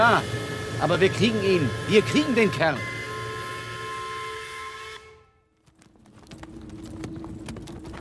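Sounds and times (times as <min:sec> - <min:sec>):
speech: 0:00.0 - 0:02.9
horses' hooves clip-clopping pulling a carriage over bumpy roads: 0:05.5 - 0:07.9.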